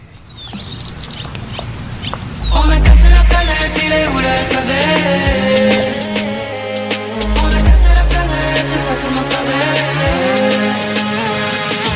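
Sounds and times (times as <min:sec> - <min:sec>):
chirpy high sounds: 0:00.2 - 0:05.0
pop song with heavy bass: 0:02.4 - 0:11.9
speech: 0:03.9 - 0:06.0.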